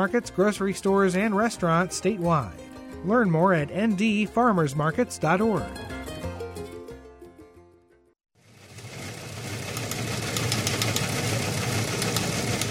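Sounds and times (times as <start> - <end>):
speech: 0.0 - 5.9
music: 0.0 - 8.2
old news wire machine clattering: 9.5 - 12.6.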